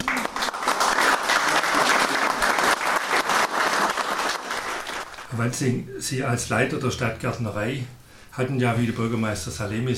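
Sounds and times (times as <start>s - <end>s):
audience applause: 0.0s - 5.3s
speech: 5.4s - 9.9s.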